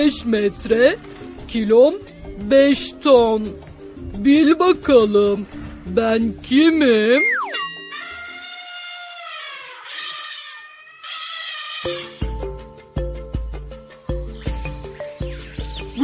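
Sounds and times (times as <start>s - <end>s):
speech: 0.0s - 7.3s
elephant trumpeting: 7.9s - 12.4s.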